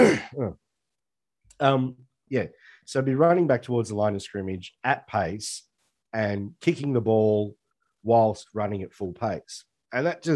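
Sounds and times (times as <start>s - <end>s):
person clearing throat: 0.0s - 0.5s
speech: 0.1s - 0.6s, 1.6s - 10.3s.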